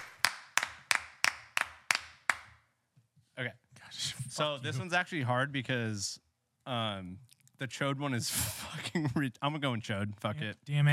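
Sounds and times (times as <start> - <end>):
applause: 0.0 - 2.5
speech: 3.4 - 10.9.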